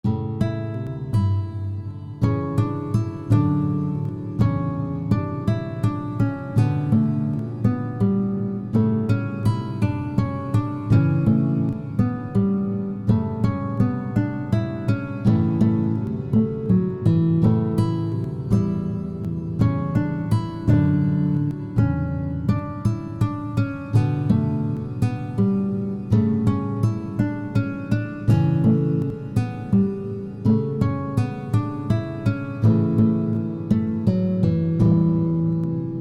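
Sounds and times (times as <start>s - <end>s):
guitar: 0.0s - 36.0s.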